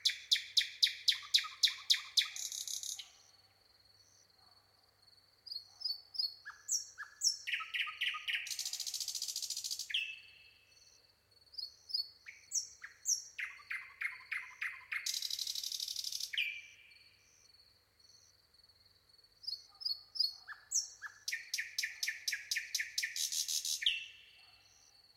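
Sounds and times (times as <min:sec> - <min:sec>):
common nightingale song with chirps and rattle: 0:00.0 - 0:03.3, 0:05.5 - 0:10.4, 0:11.6 - 0:16.8, 0:19.4 - 0:25.0.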